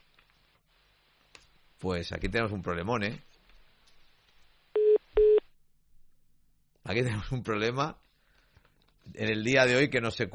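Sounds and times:
speech: 1.8s - 3.3s, 6.9s - 8.0s, 9.0s - 10.3s
telephone line dialing tone: 4.8s - 5.5s.

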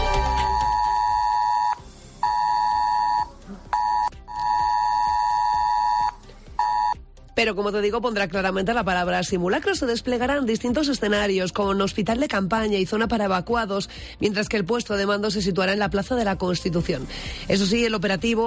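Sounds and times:
ES-Alert emergency alert tone on mobile phone: 0.1s - 7.0s
speech: 7.4s - 18.4s.

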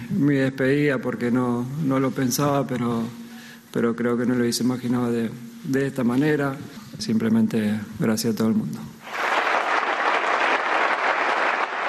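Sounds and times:
speech: 0.2s - 9.0s
crowd ovation at farewell: 9.0s - 11.8s.

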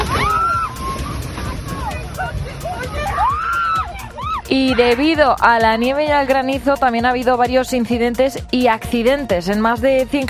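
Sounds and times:
strong wind gusts in Córdoba: 0.0s - 6.2s
speech: 4.5s - 10.2s.

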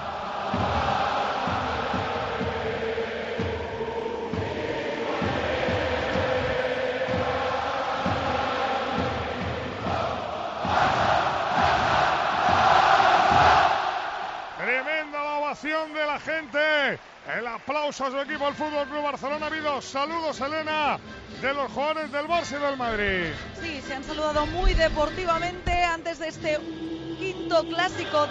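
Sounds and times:
stadium crowd singing anthem a cappella: 0.0s - 15.2s, 22.4s - 28.2s
speech: 16.2s - 28.2s.

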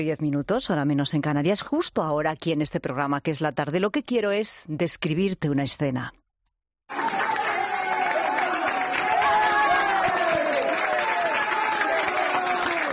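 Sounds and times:
speech: 0.0s - 6.2s
young people applauding: 6.9s - 12.9s.

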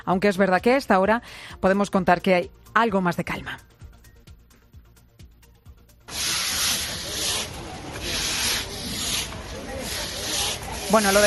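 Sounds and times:
speech: 0.0s - 3.7s, 10.9s - 11.2s
brushes scrubbing mud off floor: 6.1s - 11.2s.

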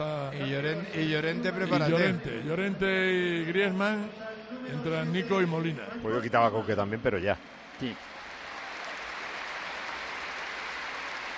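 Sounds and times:
speech: 0.4s - 8.2s
stadium crowd applause: 6.0s - 11.3s.

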